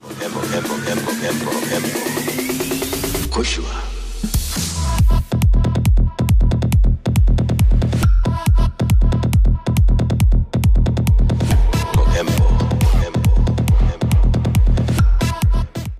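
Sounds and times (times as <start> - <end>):
trance electronic music: 0.0 - 15.9.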